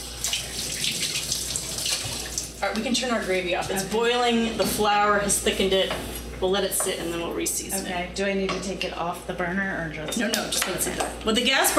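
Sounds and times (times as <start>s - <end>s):
knife rinsed under the tap: 0.0s - 2.6s
speech: 2.6s - 11.7s.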